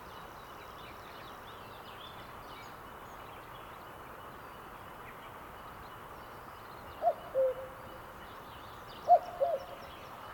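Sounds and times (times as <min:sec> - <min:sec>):
cuckoo calling: 0:07.0 - 0:07.8.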